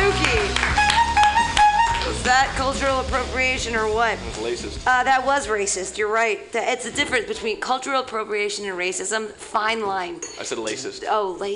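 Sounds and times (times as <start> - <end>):
audience clapping hands: 0.0 - 3.0
tonal sound: 0.0 - 3.0
speech: 2.7 - 11.5.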